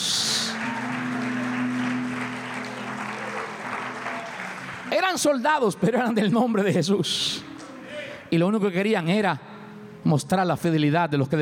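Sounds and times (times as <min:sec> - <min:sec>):
large audience applause: 0:00.0 - 0:05.4
speech: 0:04.9 - 0:07.5, 0:08.3 - 0:11.4.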